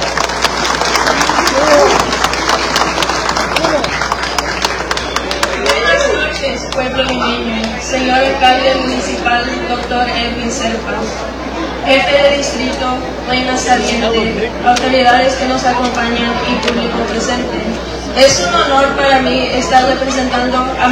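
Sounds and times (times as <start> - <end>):
audience applause: 0.0 - 7.8
speech: 8.0 - 20.9.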